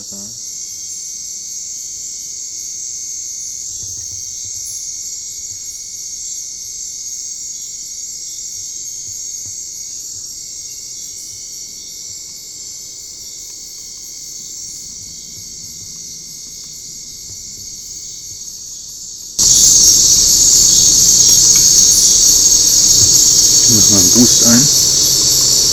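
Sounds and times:
insect chorus: 0.0s - 9.2s, 9.8s - 25.7s
European mole cricket churring: 19.4s - 25.7s
speech: 23.8s - 24.8s.

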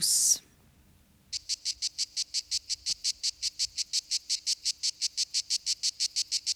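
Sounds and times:
Lyristes plebejus cicada harsh high-pitched pulsing song: 1.3s - 6.5s.

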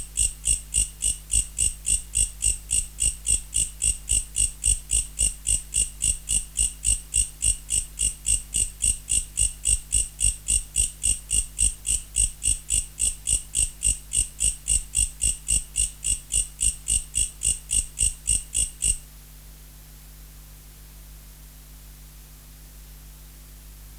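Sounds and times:
Mecopoda katydid ticking chirps: 0.1s - 19.0s.

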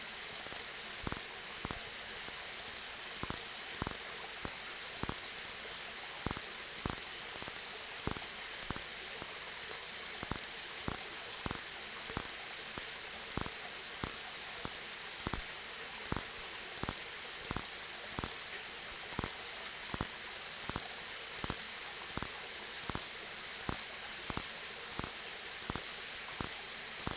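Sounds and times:
Nesobia mjobergi chirping: 0.0s - 18.4s, 19.1s - 27.1s.

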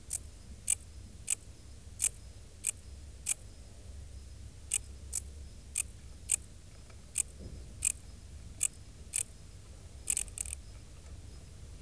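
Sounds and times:
dark bush-cricket chirping: 0.0s - 11.6s.

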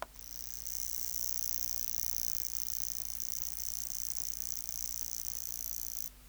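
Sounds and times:
grasshopper sizzling buzz: 0.1s - 6.1s.

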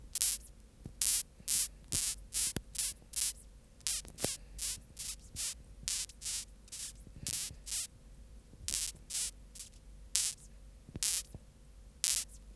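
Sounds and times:
Mesambria dubia calling: 0.2s - 7.9s, 8.7s - 11.4s, 12.1s - 12.4s.

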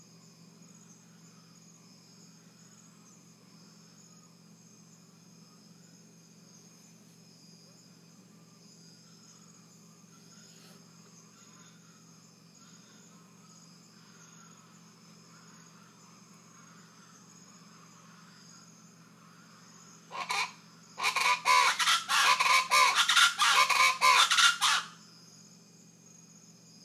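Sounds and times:
rufous-vented chachalacas cackling chorus: 20.1s - 25.0s.

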